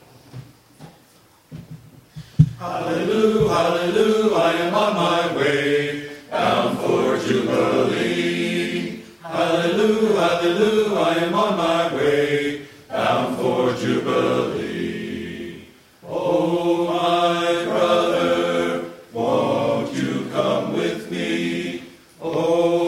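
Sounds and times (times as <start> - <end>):
men's choir singing: 2.6 - 22.8.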